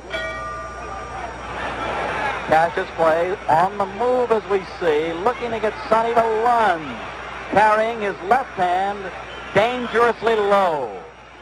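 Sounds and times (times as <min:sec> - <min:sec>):
boxing ring bell ringing: 0:00.0 - 0:01.3
crowd noise: 0:00.0 - 0:11.4
speech: 0:02.5 - 0:11.1.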